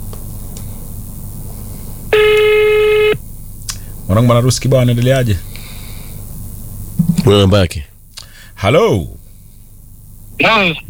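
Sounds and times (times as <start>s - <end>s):
electronic telephone tone: 2.1s - 3.2s
speech: 4.1s - 5.5s, 7.3s - 7.9s, 8.6s - 9.2s, 10.4s - 10.8s.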